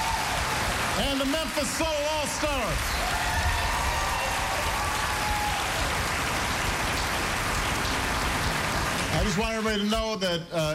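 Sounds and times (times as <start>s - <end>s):
audience applause: 0.0s - 9.9s
speech: 1.0s - 3.3s, 9.2s - 10.7s.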